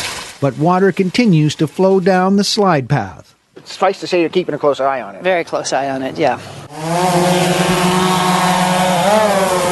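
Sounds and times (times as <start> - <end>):
speech: 0.4 - 8.0
drone motors buzzing: 6.6 - 9.6.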